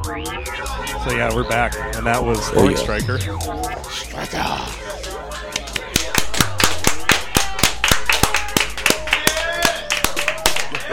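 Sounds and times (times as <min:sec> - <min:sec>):
speech: 0:00.1 - 0:04.9
hand clapping right into the microphone: 0:05.0 - 0:10.9.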